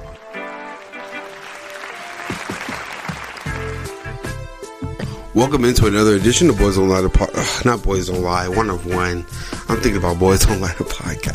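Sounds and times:
audience applause: 0:00.0 - 0:04.6
speech: 0:05.4 - 0:11.3.

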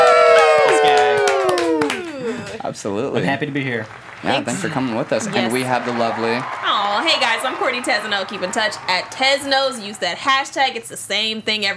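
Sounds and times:
crowd cheering with whoops and shouts: 0:00.0 - 0:02.6, 0:03.4 - 0:10.6
scattered claps: 0:00.0 - 0:02.6, 0:03.4 - 0:10.2
speech: 0:02.8 - 0:11.7.

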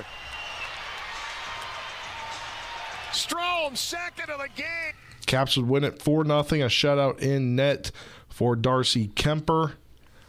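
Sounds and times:
loud Caps hockey arena crowd cheering: 0:00.0 - 0:05.2
speech: 0:03.2 - 0:09.8.

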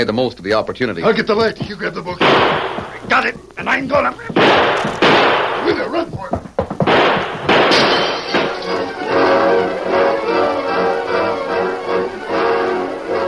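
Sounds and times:
speech: 0:00.0 - 0:06.4
noisy bursts of loud commotion: 0:00.9 - 0:13.2
gunshots at night on a ranch: 0:02.2 - 0:03.2, 0:04.3 - 0:06.0, 0:06.8 - 0:08.8.

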